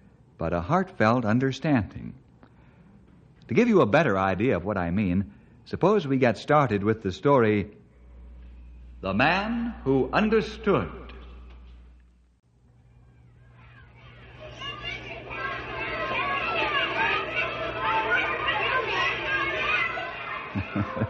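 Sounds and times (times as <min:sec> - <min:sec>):
speech: 0:00.4 - 0:02.2, 0:03.5 - 0:07.8, 0:09.0 - 0:11.0
low hum: 0:07.8 - 0:21.0
children shouting and laughing after school: 0:12.8 - 0:21.0.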